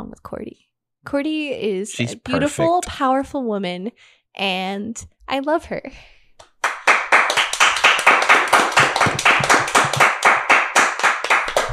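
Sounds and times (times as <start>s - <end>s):
speech: 0.2s - 6.2s
small slow hand clapping: 6.4s - 11.7s.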